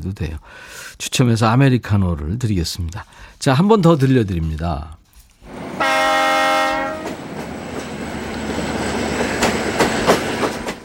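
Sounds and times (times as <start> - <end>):
speech: 0.0 - 5.0
train rolling past: 5.4 - 10.8
train horn: 5.5 - 7.2.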